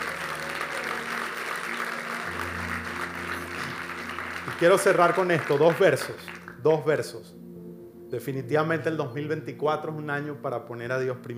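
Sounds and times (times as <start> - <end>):
audience applause: 0.0 - 6.6
sustained keyboard chords: 0.0 - 11.3
speech: 4.6 - 7.4, 8.1 - 11.3.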